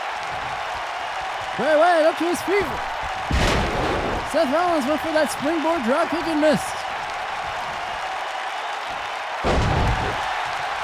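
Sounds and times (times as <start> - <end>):
pro wrestling crowd noise: 0.0 - 10.8
speech: 1.6 - 2.9, 4.3 - 6.8
wrestler slamming an opponent onto the ring mat: 9.5 - 10.3.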